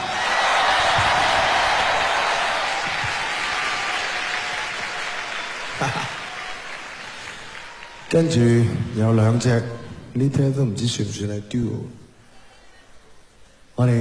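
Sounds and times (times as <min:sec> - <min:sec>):
audience applause: 0:00.0 - 0:08.7
speech: 0:08.1 - 0:12.0, 0:13.8 - 0:13.9.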